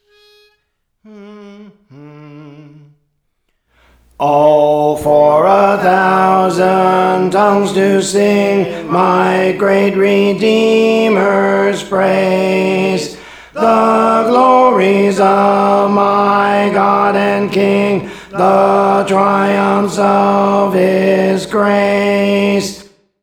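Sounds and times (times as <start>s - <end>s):
tenor singing songs: 4.0s - 22.9s.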